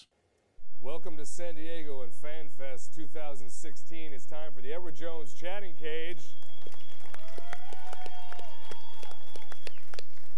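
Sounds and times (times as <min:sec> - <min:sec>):
speech: 0:00.8 - 0:06.8
high sustained whistles and cheers: 0:06.2 - 0:10.3
raucous crowd applauding: 0:06.4 - 0:10.3.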